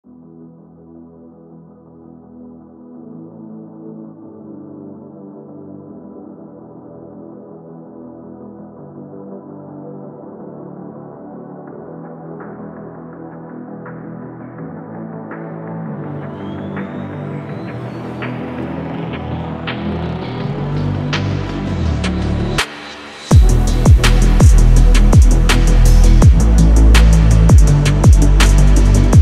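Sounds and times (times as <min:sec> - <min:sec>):
wave phonk night drive music: 0:11.7 - 0:29.1.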